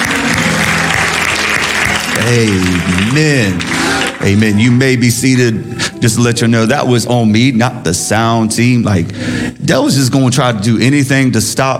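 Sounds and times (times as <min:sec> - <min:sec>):
audience clapping hands: 0:00.0 - 0:05.4
speech: 0:02.2 - 0:11.7.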